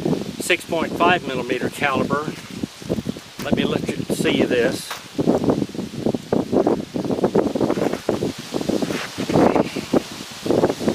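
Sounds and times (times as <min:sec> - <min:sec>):
gusty wind outdoors at a rifle shooting session buffeting the microphone: 0:00.0 - 0:10.9
speech: 0:00.5 - 0:02.5, 0:03.4 - 0:05.7.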